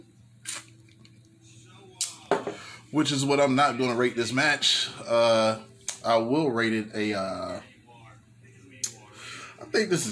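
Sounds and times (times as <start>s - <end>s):
person sipping a lemon shandy: 0.4s - 1.0s
speech: 2.9s - 7.7s, 9.7s - 10.1s.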